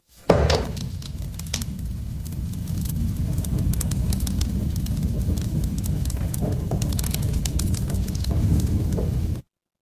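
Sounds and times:
fireplace ambience: 0:00.0 - 0:09.4.

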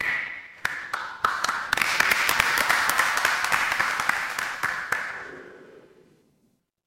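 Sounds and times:
crowd applause: 0:01.2 - 0:05.4.

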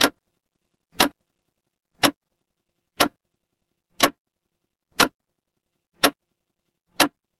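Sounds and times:
mechanical clock ticking: 0:00.0 - 0:00.3, 0:00.9 - 0:01.3, 0:01.9 - 0:02.3, 0:03.0 - 0:03.2, 0:03.9 - 0:04.2, 0:04.9 - 0:05.2, 0:06.0 - 0:06.2, 0:06.9 - 0:07.3.

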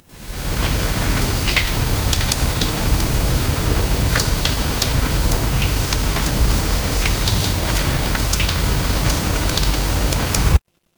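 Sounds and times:
rain: 0:00.0 - 0:10.6.

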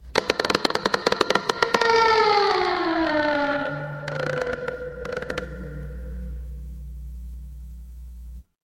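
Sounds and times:
horror creak: 0:00.0 - 0:06.7.

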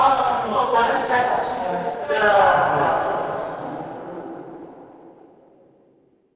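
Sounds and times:
crowd murmur: 0:00.0 - 0:05.4.

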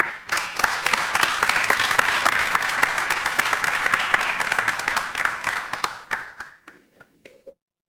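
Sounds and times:
crowd applause: 0:00.0 - 0:06.9.

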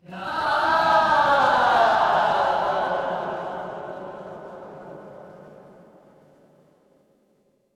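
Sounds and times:
crowd cheering: 0:00.0 - 0:05.9.

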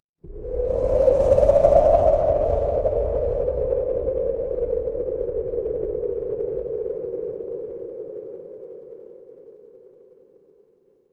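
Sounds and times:
wind: 0:00.2 - 0:10.7.

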